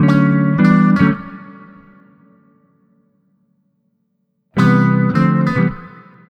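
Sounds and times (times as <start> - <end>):
multiple bossa nova guitars: 0.0 - 2.0, 4.6 - 6.2.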